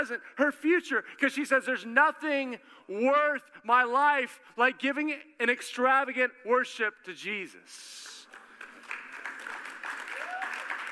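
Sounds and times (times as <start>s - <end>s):
speech: 0.0s - 8.1s
audience clapping: 8.0s - 10.9s.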